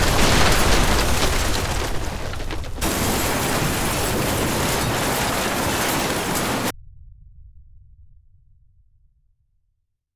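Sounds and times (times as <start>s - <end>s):
boulder smashing: 0.0s - 6.7s.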